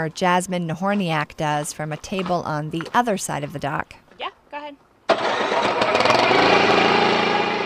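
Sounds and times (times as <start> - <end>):
speech: 0.0 - 4.0
small one-cylinder Subaru Robin engine of about 7 horsepower on a kayak: 5.1 - 7.6.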